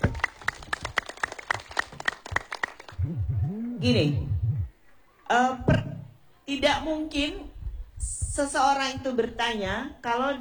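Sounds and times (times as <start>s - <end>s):
applause: 0.0s - 3.0s
speech: 3.8s - 4.3s, 5.3s - 5.8s, 6.5s - 10.3s.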